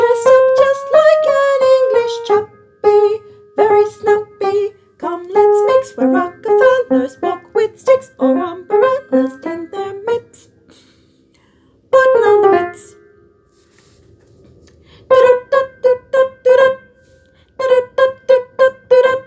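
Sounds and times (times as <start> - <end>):
soprano singing: 0.0 - 10.5, 12.0 - 13.0, 15.1 - 16.8, 17.6 - 19.2.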